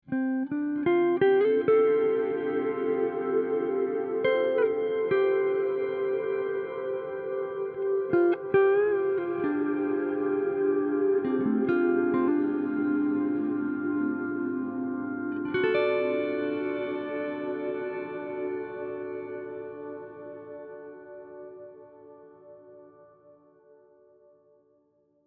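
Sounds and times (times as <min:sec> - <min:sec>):
guitar: 0:00.0 - 0:24.8.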